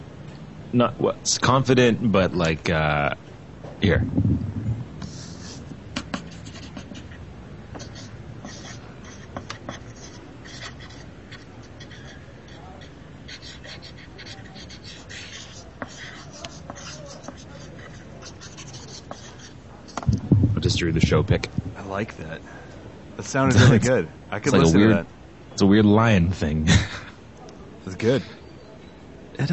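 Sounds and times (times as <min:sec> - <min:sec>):
speech: 0:00.7 - 0:03.2, 0:03.8 - 0:04.5, 0:21.1 - 0:22.6, 0:23.2 - 0:27.0, 0:27.9 - 0:28.4, 0:29.4 - 0:29.5
table knocking against wall: 0:04.0 - 0:05.0, 0:20.0 - 0:21.8
pencil drawing: 0:05.0 - 0:07.2, 0:07.8 - 0:20.0.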